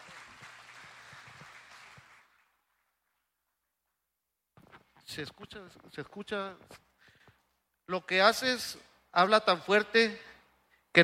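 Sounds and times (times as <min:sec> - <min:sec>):
audience applause: 0:00.0 - 0:02.7
speech: 0:05.1 - 0:06.9, 0:07.9 - 0:10.3.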